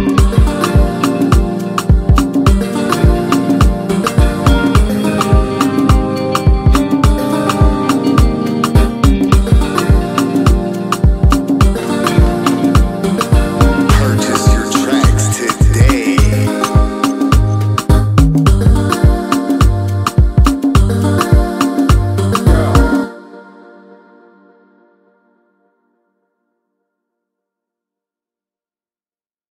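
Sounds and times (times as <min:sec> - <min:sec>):
Afro highlife instrumental music: 0:00.0 - 0:23.3.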